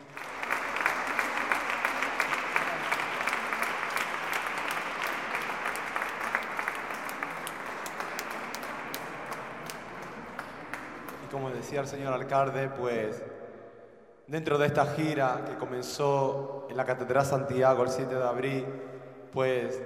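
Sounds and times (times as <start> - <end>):
audience applause: 0.0 - 11.7
speech: 11.7 - 13.3, 14.3 - 19.8.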